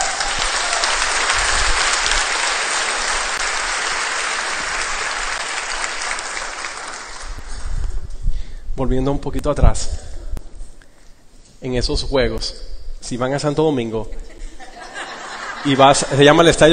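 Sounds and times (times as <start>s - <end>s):
audience applause: 0.0s - 7.6s
speech: 8.8s - 10.0s, 11.6s - 14.3s, 15.6s - 16.7s
laughter: 14.1s - 16.6s.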